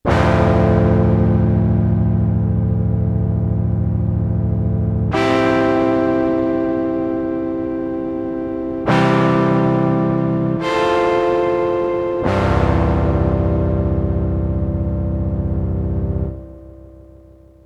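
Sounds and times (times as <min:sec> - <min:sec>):
Modal Argon8 synthesizer: 0:00.0 - 0:17.6.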